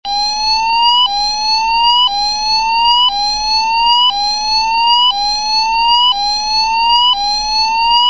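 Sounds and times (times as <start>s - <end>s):
alarm: 0.1s - 8.0s.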